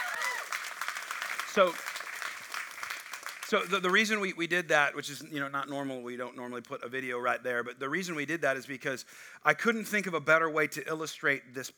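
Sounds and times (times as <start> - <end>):
audience cheer: 0.0 - 3.6
audience applause: 0.0 - 4.2
speech: 1.6 - 1.9, 3.5 - 11.7.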